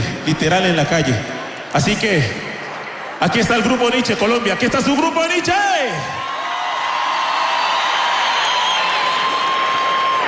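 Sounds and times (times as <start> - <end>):
speech: 0.2 - 2.5, 3.2 - 6.2
concert audience cheering: 5.7 - 10.2
concert audience applause: 6.2 - 10.2.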